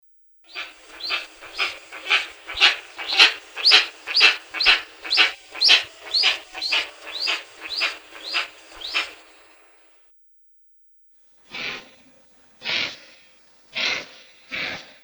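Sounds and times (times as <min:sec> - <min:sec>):
Steppe eagle calling in barking yelps: 0:00.5 - 0:09.5.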